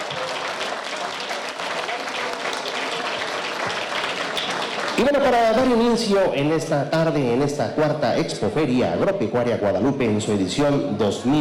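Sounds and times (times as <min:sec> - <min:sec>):
loud audience applause: 0:00.0 - 0:06.1
speech: 0:05.0 - 0:11.4.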